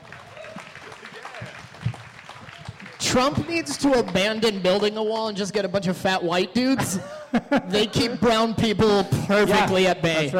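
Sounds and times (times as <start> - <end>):
audience clapping: 0.0 - 5.6
crowd noise: 0.0 - 6.6, 7.6 - 10.3
speech: 3.0 - 10.3
laughter: 6.7 - 9.6.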